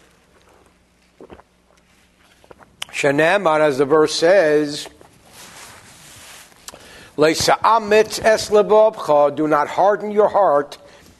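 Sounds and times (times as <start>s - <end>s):
person sipping tea: 0.0s - 3.0s, 5.8s - 7.1s
speech: 3.0s - 5.0s, 7.2s - 10.8s.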